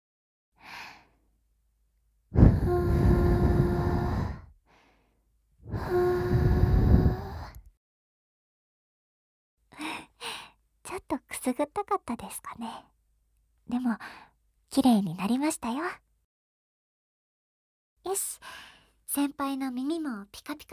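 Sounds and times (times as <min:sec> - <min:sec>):
gentle ASMR blowing into a listener's ear: 0:02.4 - 0:04.4, 0:05.7 - 0:07.6
faint breaths: 0:02.4 - 0:07.7
speech: 0:10.9 - 0:13.0, 0:13.7 - 0:16.0, 0:18.0 - 0:20.7.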